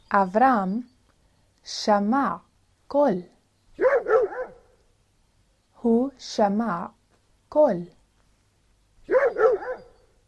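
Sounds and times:
speech: 0:00.1 - 0:00.9, 0:01.6 - 0:03.9, 0:05.8 - 0:08.0
dog barking: 0:03.8 - 0:04.8, 0:09.1 - 0:10.1.

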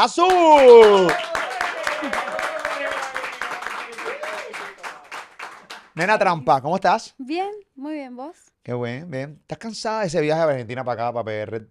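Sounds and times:
speech: 0:00.0 - 0:01.3, 0:06.0 - 0:11.7
hand clapping: 0:00.0 - 0:06.4
person whooping: 0:00.4 - 0:05.1.

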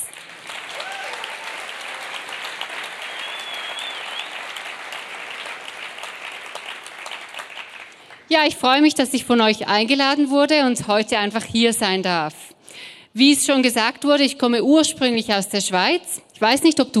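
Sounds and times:
audience applause: 0:00.0 - 0:08.3
speech: 0:08.3 - 0:12.5, 0:13.2 - 0:16.9.

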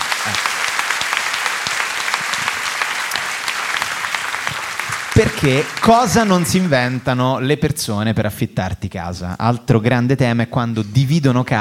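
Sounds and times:
crowd applauding: 0:00.0 - 0:07.4
speech: 0:00.2 - 0:00.6, 0:05.2 - 0:11.5.

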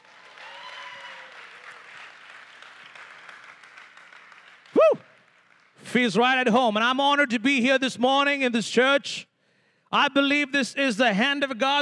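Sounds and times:
audience clapping: 0:00.0 - 0:06.6
speech: 0:05.9 - 0:09.3, 0:09.9 - 0:11.8.

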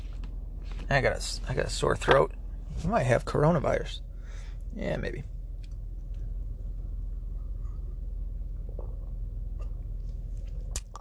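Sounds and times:
steady low hum: 0:00.0 - 0:10.9
speech: 0:00.9 - 0:04.1, 0:04.7 - 0:05.3
person gulping cold water: 0:08.5 - 0:10.9
swallowing: 0:08.5 - 0:10.9
lip smack: 0:10.7 - 0:10.9
wet mouth clicks: 0:10.7 - 0:10.9.

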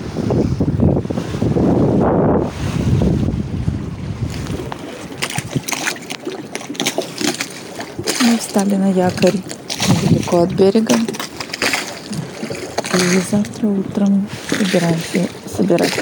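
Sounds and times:
sea waves while sailing: 0:00.0 - 0:15.9
wind noise while under sail: 0:00.0 - 0:15.9
sharp irregular splashes against the hull: 0:02.5 - 0:15.9
speech: 0:08.6 - 0:11.1, 0:13.0 - 0:15.9.

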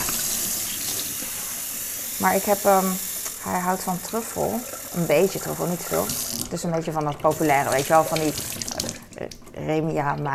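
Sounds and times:
cold tap water running for rinsing: 0:00.0 - 0:10.3
speech: 0:02.2 - 0:10.3.

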